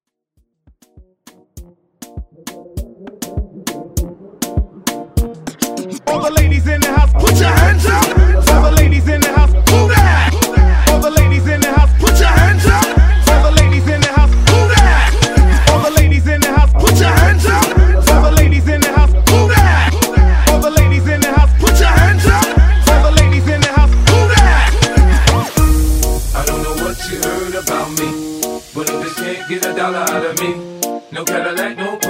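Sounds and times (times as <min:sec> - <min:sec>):
moombahton hype music: 0:00.4 - 0:32.0.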